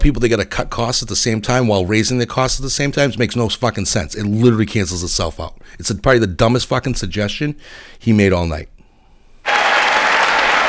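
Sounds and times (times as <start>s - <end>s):
speech: 0.0s - 8.7s
crowd applause: 9.5s - 10.6s.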